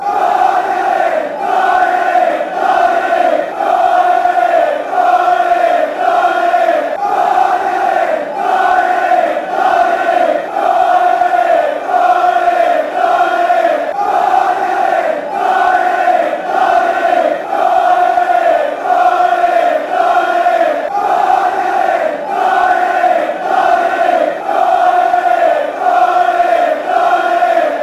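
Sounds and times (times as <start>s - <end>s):
fans chanting: 0.0s - 27.8s.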